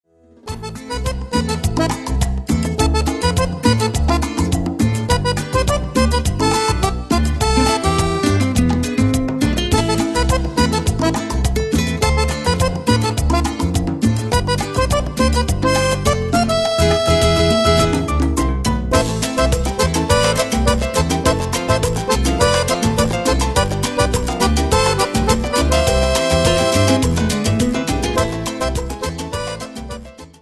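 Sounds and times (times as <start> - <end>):
Cuban accordion: 0.4 - 30.4.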